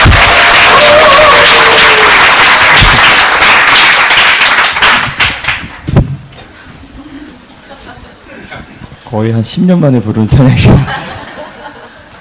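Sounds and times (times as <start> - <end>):
church congregation clapping during Sunday worship: 0.0 - 5.9
laughter: 7.0 - 8.5, 10.6 - 12.1
speech: 9.2 - 11.1.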